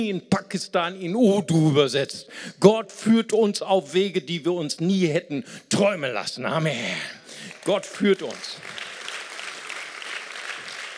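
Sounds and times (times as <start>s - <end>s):
speech: 0.0s - 8.8s
audience clapping: 7.3s - 10.9s.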